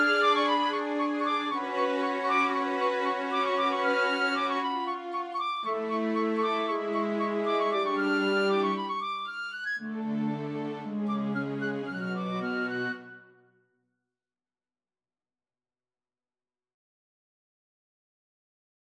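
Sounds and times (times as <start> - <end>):
orchestra: 0.0 - 13.2.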